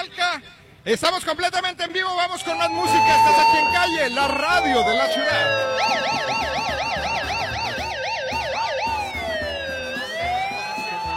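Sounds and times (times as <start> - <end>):
speech: 0.8 - 6.5
alarm siren: 2.4 - 11.1.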